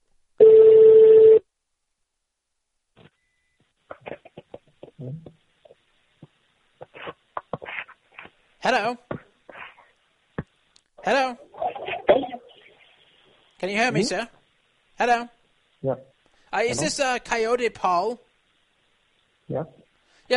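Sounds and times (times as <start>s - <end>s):
U.S.-style telephone ringing tone: 0.4s - 1.4s
speech: 5.0s - 5.4s, 8.6s - 9.1s, 11.1s - 11.4s, 13.6s - 14.4s, 15.0s - 18.2s, 19.6s - 20.3s.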